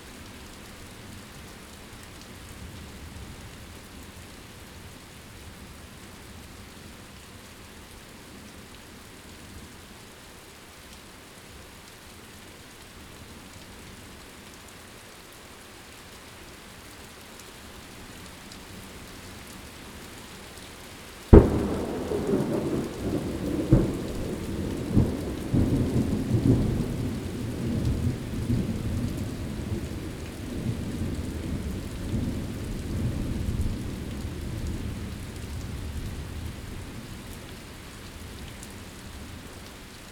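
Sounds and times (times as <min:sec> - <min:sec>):
thunderstorm: 0:21.3 - 0:37.2.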